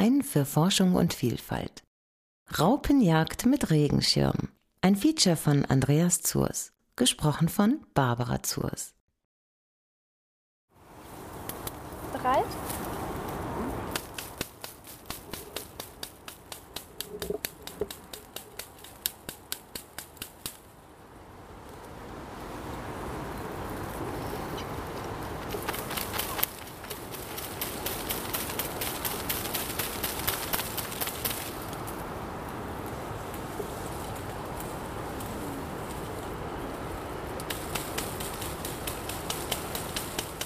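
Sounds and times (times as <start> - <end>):
speech: 0.0 - 1.8, 2.5 - 9.0
rustling patter: 11.1 - 20.7, 23.4 - 40.4
light stick tapping on blackthorn branches: 12.6 - 20.7, 25.4 - 31.9, 37.4 - 40.4.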